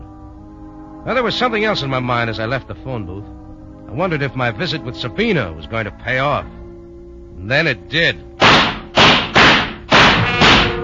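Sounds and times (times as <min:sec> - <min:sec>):
speech: 0:01.0 - 0:06.6, 0:07.4 - 0:08.3
gunshots: 0:08.4 - 0:10.8.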